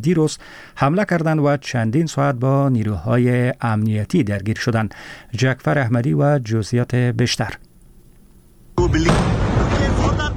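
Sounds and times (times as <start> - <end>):
speech: 0.0 - 7.7, 8.9 - 9.7
explosion at police headquarters in Karachi: 8.8 - 10.3.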